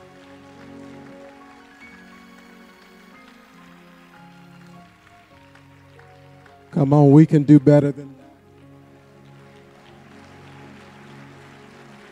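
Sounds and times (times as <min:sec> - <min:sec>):
audience clapping hands in praise: 0:00.0 - 0:12.1
speech: 0:06.8 - 0:08.2.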